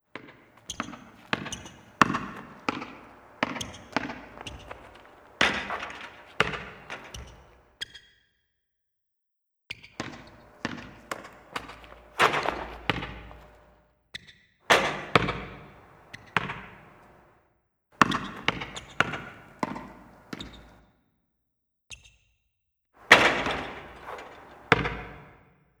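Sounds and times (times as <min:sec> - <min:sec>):
basketball game in Hong Kong: 0:00.2 - 0:07.7, 0:10.0 - 0:13.7, 0:14.7 - 0:17.3, 0:18.0 - 0:20.8, 0:23.0 - 0:25.3.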